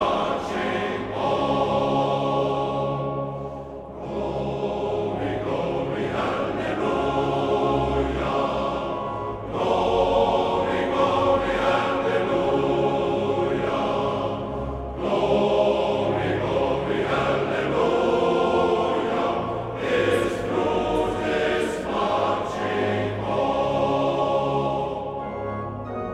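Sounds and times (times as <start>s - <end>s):
men's choir singing: 0.0s - 26.0s.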